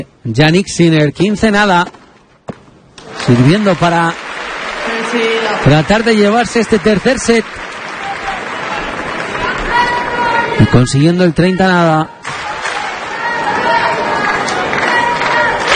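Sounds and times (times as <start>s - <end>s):
speech: 0.0s - 2.0s, 3.2s - 4.2s, 5.1s - 7.7s, 10.6s - 12.2s
crowd applause at tennis match: 3.0s - 10.9s, 12.2s - 15.7s.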